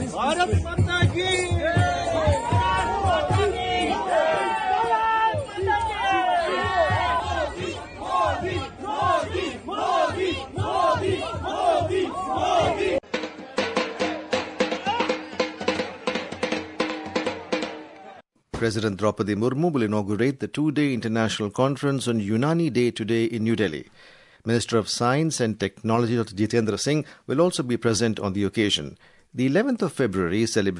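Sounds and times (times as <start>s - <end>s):
Indian community in Paris cheering and chanting to welcome Narendra Modi: 0.0s - 18.2s
speech: 0.2s - 1.8s, 18.6s - 30.7s.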